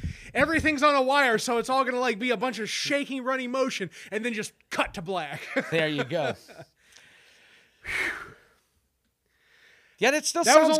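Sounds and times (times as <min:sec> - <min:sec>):
man breathing heavily after climbing stairs: 0:00.0 - 0:00.4, 0:06.8 - 0:08.7, 0:09.3 - 0:10.0
speech: 0:00.4 - 0:06.7, 0:10.0 - 0:10.7
laughter: 0:05.3 - 0:06.8.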